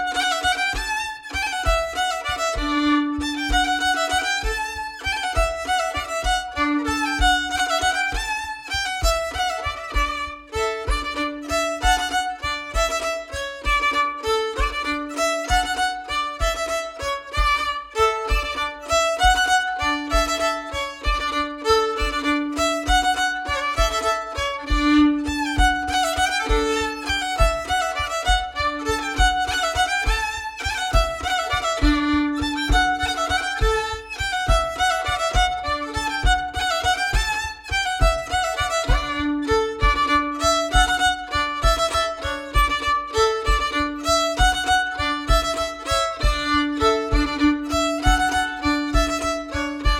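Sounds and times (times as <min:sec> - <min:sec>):
bourree dance tune: 0:00.1 - 0:49.9.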